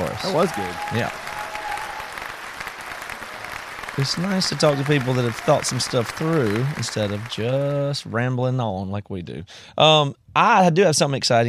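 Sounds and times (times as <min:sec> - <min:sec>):
applause: 0:00.0 - 0:08.0
speech: 0:00.2 - 0:01.3, 0:04.0 - 0:11.4.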